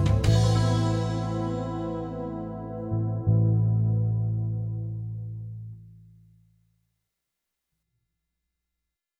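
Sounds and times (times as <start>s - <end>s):
16-bar rock solo: 0.0s - 5.1s.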